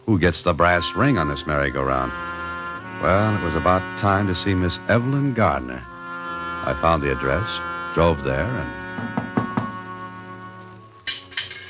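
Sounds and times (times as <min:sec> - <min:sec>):
steady sustained musical tone: 0:00.0 - 0:11.6
speech: 0:00.1 - 0:02.4, 0:03.0 - 0:05.9, 0:06.6 - 0:09.2
knocking on a front door: 0:09.0 - 0:09.8.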